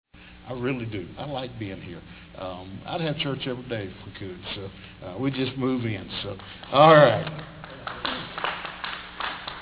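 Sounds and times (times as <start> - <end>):
speech: 0.5 - 7.6
audience clapping: 6.1 - 9.6.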